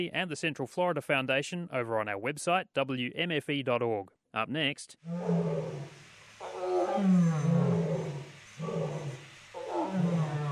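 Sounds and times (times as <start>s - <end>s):
speech: 0.0s - 5.8s
lions roaring: 5.0s - 10.5s
tigers barking at each other: 5.1s - 10.5s.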